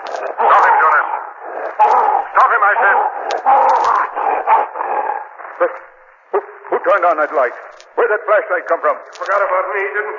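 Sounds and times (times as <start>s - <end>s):
wolf growling and barking: 0.0s - 5.4s
speech: 1.7s - 10.1s.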